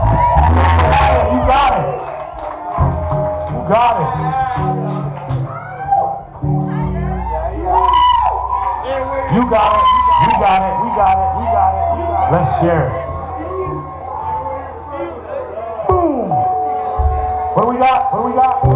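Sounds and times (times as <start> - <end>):
large audience giving a loud sustained ovation: 0.0 - 5.8
crowd yelling and whooping: 0.0 - 18.7
speech: 3.7 - 5.2, 9.4 - 11.2, 12.3 - 13.0.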